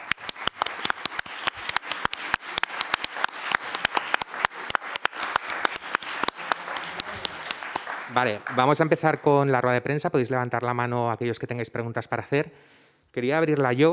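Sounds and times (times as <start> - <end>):
audience applause: 0.0 - 9.6
speech: 8.2 - 13.9.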